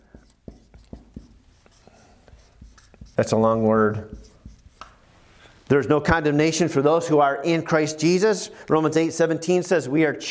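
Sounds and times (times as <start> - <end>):
pen scratching on a board: 0.0 - 5.0
speech: 3.2 - 4.3, 5.7 - 10.2.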